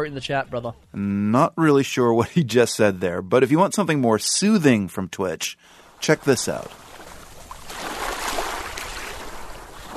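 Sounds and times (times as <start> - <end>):
speech: 0.0 - 6.8
ocean waves: 5.7 - 9.9.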